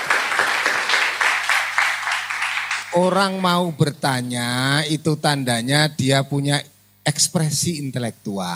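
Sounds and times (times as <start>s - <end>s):
audience clapping after a question at a lecture: 0.0s - 3.6s
speech: 2.9s - 8.5s.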